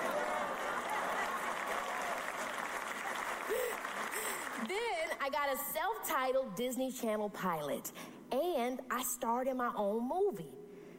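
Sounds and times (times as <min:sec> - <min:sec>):
audience clapping: 0:00.0 - 0:05.0
speech: 0:05.2 - 0:10.6.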